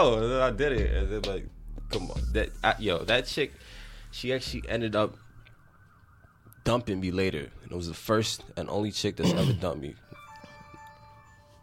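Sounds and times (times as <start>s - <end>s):
speech: 0.0s - 5.2s, 6.6s - 10.1s
phone ringtone electronic melody: 10.0s - 11.6s.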